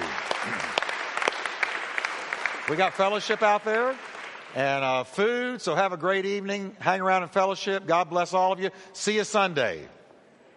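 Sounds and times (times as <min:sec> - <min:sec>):
audience applauding: 0:00.0 - 0:05.0
speech: 0:02.7 - 0:10.0.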